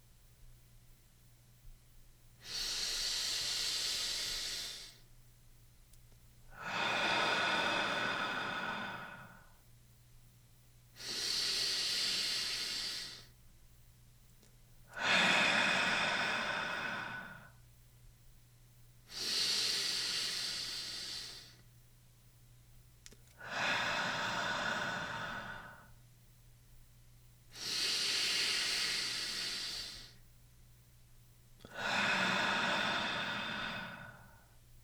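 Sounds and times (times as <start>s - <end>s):
low steady hum: 0.0s - 11.0s, 12.8s - 19.2s, 20.0s - 28.1s, 29.0s - 34.8s
slow guided breathing during a gentle morning stretch: 2.4s - 5.0s, 6.5s - 9.6s, 11.0s - 13.4s, 14.9s - 17.6s, 19.1s - 21.6s, 23.3s - 26.0s, 27.5s - 30.2s, 31.6s - 34.6s.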